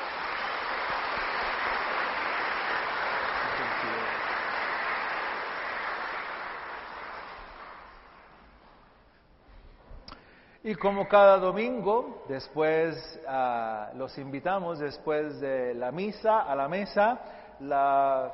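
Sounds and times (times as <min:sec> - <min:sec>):
audience applauding loudly: 0:00.0 - 0:08.9
speech: 0:10.6 - 0:18.3.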